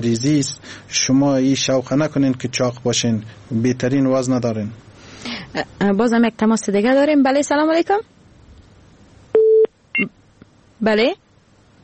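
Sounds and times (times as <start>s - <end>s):
speech: 0.0s - 8.2s, 10.0s - 10.2s, 10.8s - 11.2s
telephone tone after a caller's line drops: 9.4s - 10.1s.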